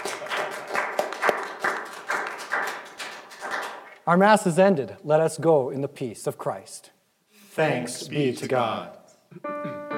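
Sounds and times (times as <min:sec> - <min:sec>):
audience applause: 0:00.0 - 0:04.0
speech: 0:04.0 - 0:07.0, 0:07.6 - 0:09.6.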